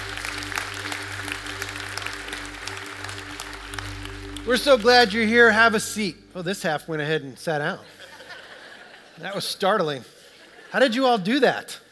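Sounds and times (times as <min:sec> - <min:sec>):
audience applause: 0:00.0 - 0:05.5
speech: 0:04.5 - 0:08.0, 0:09.2 - 0:11.8.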